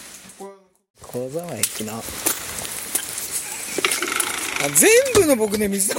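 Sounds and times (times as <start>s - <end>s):
speech: 1.1s - 2.4s, 4.6s - 5.9s
small hail pellets pattering down: 1.1s - 5.9s.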